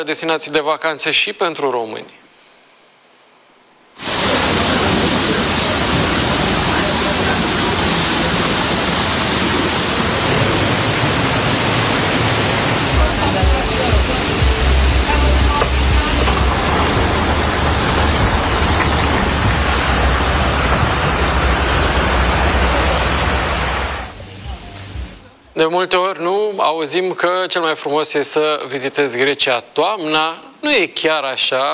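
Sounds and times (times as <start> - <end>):
speech: 0.0 - 2.2, 25.6 - 31.7
floodwater rushing through streets: 4.0 - 25.3.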